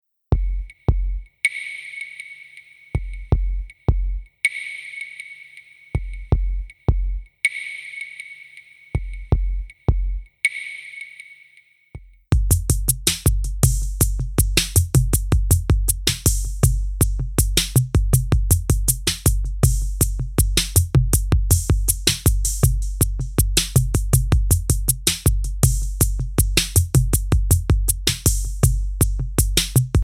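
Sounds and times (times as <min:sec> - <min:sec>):
bass: 0:00.3 - 0:01.3, 0:03.0 - 0:04.3, 0:06.0 - 0:07.3, 0:09.0 - 0:10.3, 0:12.3 - 0:30.0.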